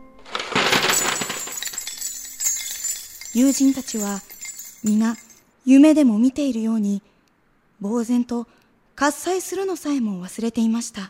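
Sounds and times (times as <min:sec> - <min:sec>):
gold coins spilling onto a floor: 0:00.2 - 0:05.4
speech: 0:03.4 - 0:07.1, 0:07.8 - 0:11.0.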